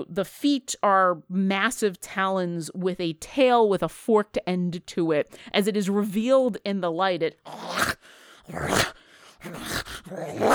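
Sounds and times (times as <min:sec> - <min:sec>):
speech: 0:00.0 - 0:07.9, 0:08.5 - 0:10.5
growling howler monster sound effect in a tabletop role-playing game: 0:07.5 - 0:10.5.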